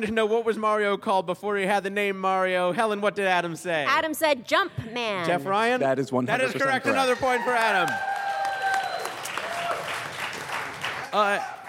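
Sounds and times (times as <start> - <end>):
speech: 0.0 - 8.1, 11.1 - 11.6
crowd applause: 6.6 - 11.6.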